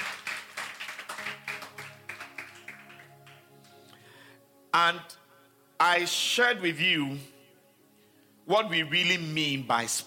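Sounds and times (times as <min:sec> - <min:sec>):
audience clapping hands: 0:00.0 - 0:03.8
speech: 0:04.7 - 0:05.2, 0:05.8 - 0:07.3, 0:08.5 - 0:10.0.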